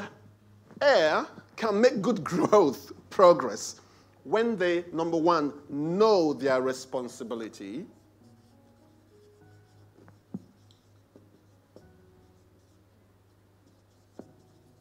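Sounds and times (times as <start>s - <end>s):
speech: 0.8s - 8.0s
pen scratching while writing by hand: 7.9s - 14.8s.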